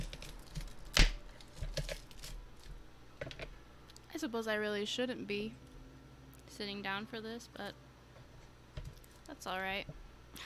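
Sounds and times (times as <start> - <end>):
knife cutting crosswise through an onion: 0.0 - 2.7
speech: 4.2 - 5.6, 6.6 - 7.8, 9.4 - 10.4.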